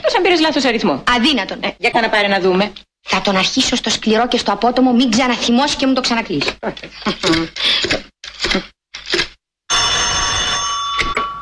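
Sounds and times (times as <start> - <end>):
speech: 0.2 - 9.2
telephone bell ringing: 9.7 - 11.3.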